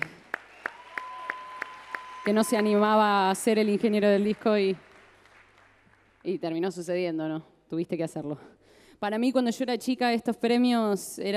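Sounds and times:
applause: 0:00.0 - 0:06.5
speech: 0:02.2 - 0:04.9, 0:06.2 - 0:11.3.

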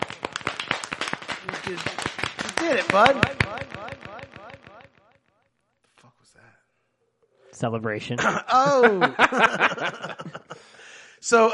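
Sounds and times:
round of applause: 0:00.0 - 0:04.9
laughter: 0:01.5 - 0:04.3, 0:08.2 - 0:10.9
speech: 0:01.7 - 0:02.0, 0:02.6 - 0:03.5, 0:07.6 - 0:10.4, 0:11.2 - 0:11.5.

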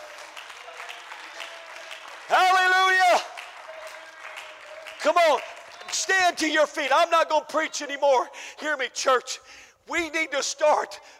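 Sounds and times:
audience clapping hands: 0:00.0 - 0:07.1
speech: 0:05.1 - 0:11.1.

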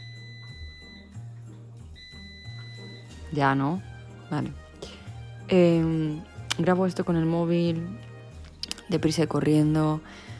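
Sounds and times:
air fryer beeping: 0:00.0 - 0:01.2, 0:01.9 - 0:03.1
speech: 0:03.3 - 0:04.6, 0:05.5 - 0:08.1, 0:08.9 - 0:10.3.

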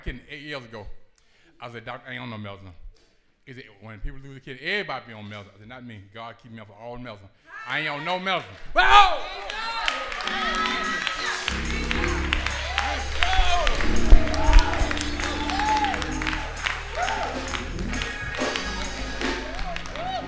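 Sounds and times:
speech: 0:00.1 - 0:01.0, 0:01.6 - 0:02.8, 0:03.5 - 0:11.8
church audience shouting with many overlapping excited voices: 0:08.9 - 0:20.2
church audience applauding: 0:09.2 - 0:20.2.

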